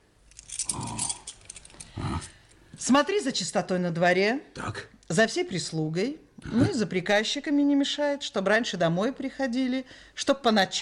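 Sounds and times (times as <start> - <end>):
bunch of house keys jangling as they are handed over: 0.2 - 2.4
speech: 2.9 - 10.8.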